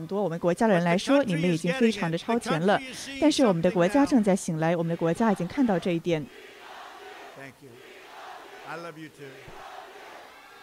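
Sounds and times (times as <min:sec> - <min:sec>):
speech: 0:00.0 - 0:06.5, 0:08.7 - 0:09.6
crowd shouting: 0:03.4 - 0:10.6.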